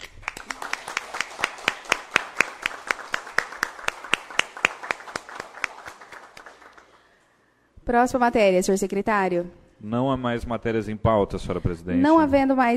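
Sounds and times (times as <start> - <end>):
round of applause in council chamber: 0.0 - 7.4
speech: 7.9 - 12.7.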